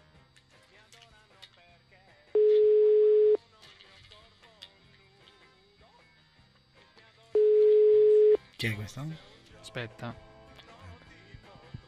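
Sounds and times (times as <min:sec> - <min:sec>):
telephone call tone while dialing: 0:02.4 - 0:03.4, 0:07.4 - 0:08.4
speech: 0:08.6 - 0:10.3.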